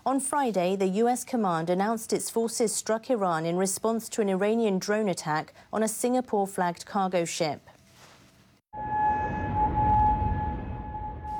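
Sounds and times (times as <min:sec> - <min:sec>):
speech: 0:00.0 - 0:07.8
air raid sirens blaring: 0:08.7 - 0:11.3.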